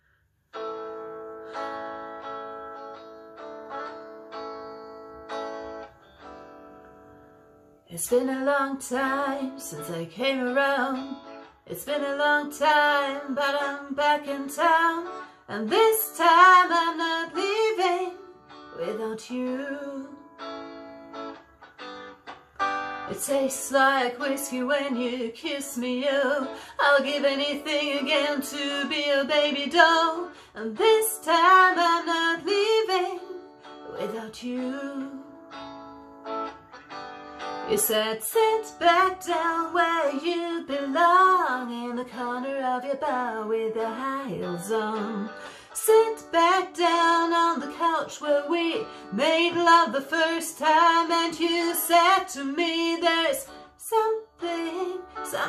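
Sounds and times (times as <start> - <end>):
person singing: 7.9 - 20.3, 23.1 - 35.5, 37.7 - 55.4.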